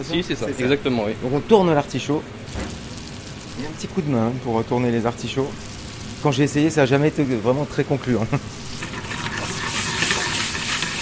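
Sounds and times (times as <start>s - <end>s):
speech: 0.0s - 2.7s, 3.6s - 8.6s
butter foaming in a hot frying pan: 2.5s - 3.9s, 5.5s - 6.4s, 8.5s - 11.0s.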